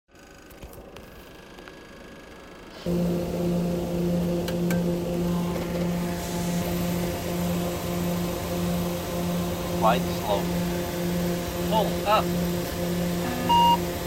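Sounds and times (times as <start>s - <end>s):
plane: 2.3s - 14.0s.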